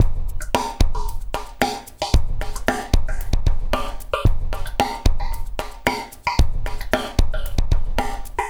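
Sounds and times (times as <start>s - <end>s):
liquid groove music: 0.0s - 8.4s.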